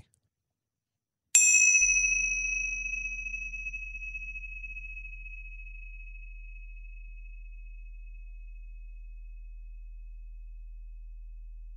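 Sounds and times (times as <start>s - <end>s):
small meditation cymbals ringing: 1.4s - 5.8s.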